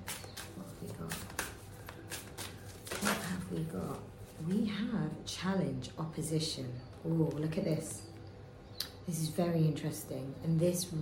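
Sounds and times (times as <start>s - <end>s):
tarot cards being shuffled: 0.0s - 3.6s
speech: 3.5s - 8.1s, 9.0s - 11.0s.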